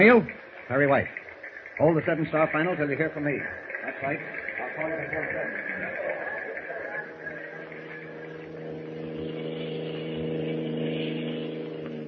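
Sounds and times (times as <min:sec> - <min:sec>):
speech: 0:00.0 - 0:01.2, 0:01.8 - 0:06.0
car engine drone driving along a road toward a naval base: 0:02.4 - 0:12.0.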